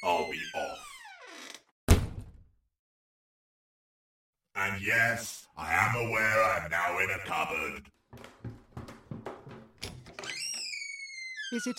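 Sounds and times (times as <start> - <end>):
chair squeaking: 0.0 - 1.7, 8.2 - 11.7
speech: 4.7 - 8.4, 11.5 - 11.7.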